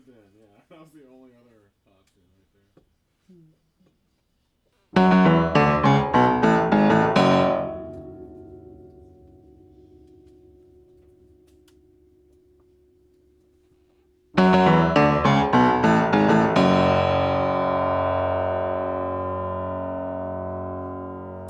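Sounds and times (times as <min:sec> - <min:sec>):
piano: 0:05.0 - 0:12.1, 0:14.4 - 0:21.4.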